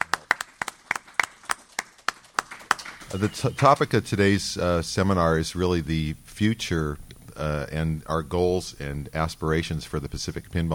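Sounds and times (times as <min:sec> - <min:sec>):
applause: 0:00.0 - 0:03.9
speech: 0:03.1 - 0:10.7.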